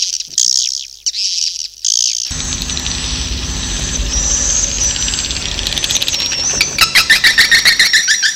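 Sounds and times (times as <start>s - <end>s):
many swiftlets chirping: 2.3s - 8.2s.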